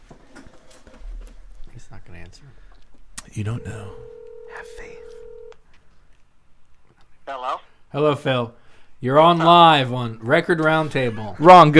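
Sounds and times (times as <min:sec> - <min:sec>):
speech: 0:02.0 - 0:05.0, 0:07.9 - 0:11.7
steady telephone tone: 0:03.4 - 0:05.6.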